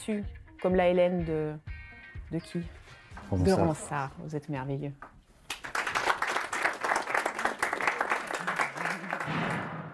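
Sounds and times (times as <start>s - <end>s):
speech: 0.0s - 1.7s, 2.3s - 5.1s
audience applause: 5.5s - 9.4s.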